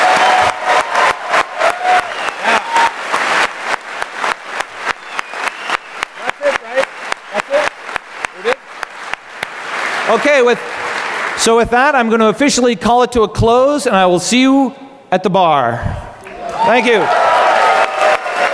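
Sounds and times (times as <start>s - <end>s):
audience round of applause: 0.0s - 11.4s, 16.2s - 18.5s
speech: 10.1s - 10.8s, 11.4s - 16.0s, 16.7s - 17.3s.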